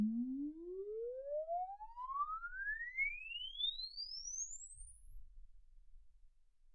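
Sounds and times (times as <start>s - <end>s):
exponential sine sweep from 10 Hz to 24 kHz: 0.2s - 5.7s.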